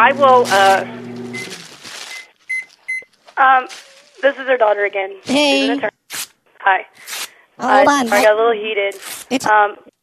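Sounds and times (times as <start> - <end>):
speech: 0.0 - 1.0, 3.4 - 6.0, 6.6 - 9.9
microwave oven keypad beeps: 1.3 - 3.1.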